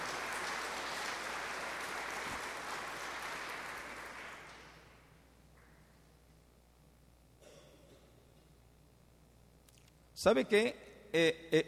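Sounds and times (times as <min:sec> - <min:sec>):
audience applause: 0:00.0 - 0:04.9
speech: 0:10.2 - 0:11.6.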